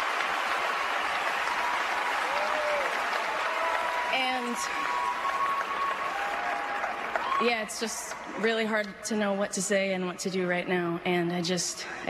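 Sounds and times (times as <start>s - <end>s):
audience applause at an awards show: 0.0s - 8.3s
whoops and cheers: 0.4s - 8.2s
speech: 4.2s - 5.0s, 7.4s - 12.0s.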